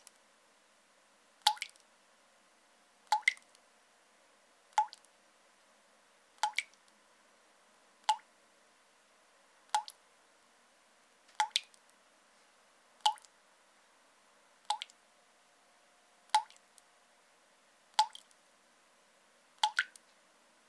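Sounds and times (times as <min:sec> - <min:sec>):
water dripping in a sink or tub: 0:01.4 - 0:01.9, 0:03.0 - 0:03.6, 0:04.7 - 0:05.1, 0:06.4 - 0:06.9, 0:08.0 - 0:08.3, 0:09.7 - 0:10.0, 0:11.3 - 0:11.9, 0:13.0 - 0:13.4, 0:14.6 - 0:15.0, 0:16.3 - 0:16.8, 0:17.9 - 0:18.4, 0:19.6 - 0:20.1.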